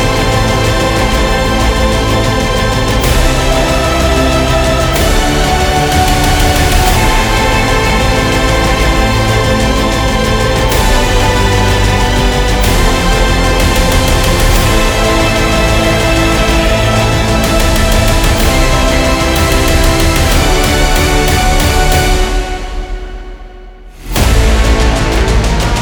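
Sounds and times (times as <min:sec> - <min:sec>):
epic adventure travel music: 0:00.0 - 0:25.8.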